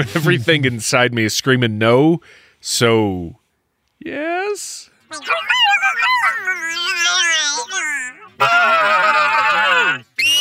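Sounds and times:
speech: 0.0 - 3.4, 4.0 - 9.3
person imitating a Bigfoot call, whooping howl and screeching roar: 5.1 - 10.0.

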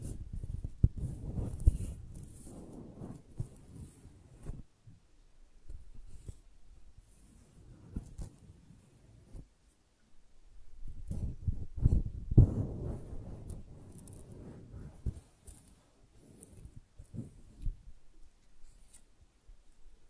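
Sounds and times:
flowers being handled, rustling and crinkling: 0.0 - 4.7, 10.8 - 20.0
small clicks and brushing: 0.0 - 4.7, 5.6 - 9.8, 10.8 - 19.9.

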